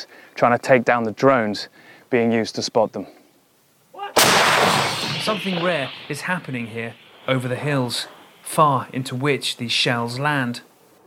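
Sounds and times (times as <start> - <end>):
speech: 0.0 - 3.2, 5.2 - 10.7
distant crackle of small arms fire: 4.2 - 8.6.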